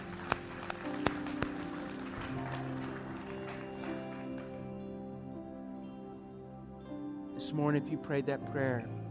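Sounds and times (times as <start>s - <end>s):
audience applauding: 0.0s - 4.9s
speech: 7.4s - 9.0s.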